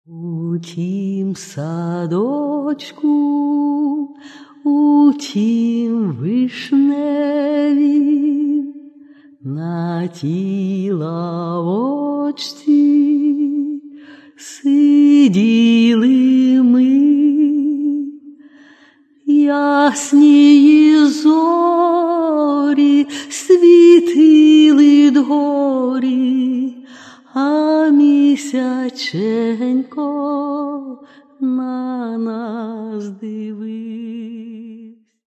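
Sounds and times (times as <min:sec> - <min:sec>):
romantic songs: 0:00.1 - 0:35.0.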